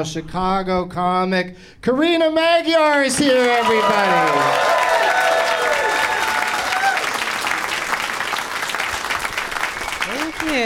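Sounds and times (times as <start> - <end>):
speech: 0.0 - 5.3, 10.5 - 10.6
audience whoops and cheers: 3.3 - 7.4
audience applause: 3.3 - 10.6.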